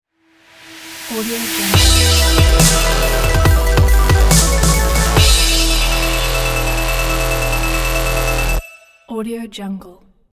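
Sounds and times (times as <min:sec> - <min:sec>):
show ident jingle: 0:01.8 - 0:09.1.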